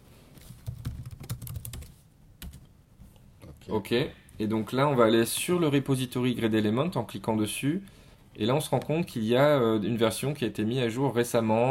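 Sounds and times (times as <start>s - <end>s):
computer keyboard typing as a search is entered on GitHub: 0.6s - 2.7s
speech: 3.7s - 11.6s.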